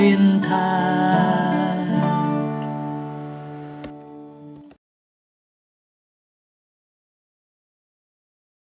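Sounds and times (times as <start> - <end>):
tenor singing: 0.0 - 4.0.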